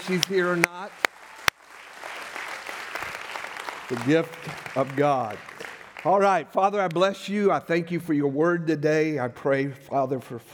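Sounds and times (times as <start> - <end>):
audience applause ovation: 0.0 - 6.4
speech: 0.1 - 1.1, 3.9 - 10.5.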